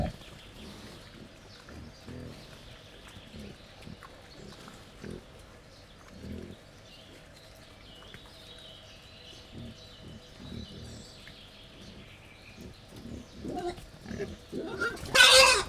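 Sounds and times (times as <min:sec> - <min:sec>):
captive wild boar grunting while feeding: 0:00.0 - 0:05.4, 0:09.5 - 0:15.6.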